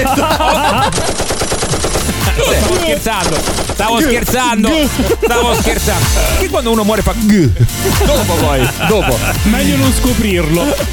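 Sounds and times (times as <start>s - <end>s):
laughter: 0.0s - 6.8s, 7.5s - 10.9s
submachine gun sound effect firing automatic bursts: 0.7s - 4.6s
speech: 2.9s - 10.9s.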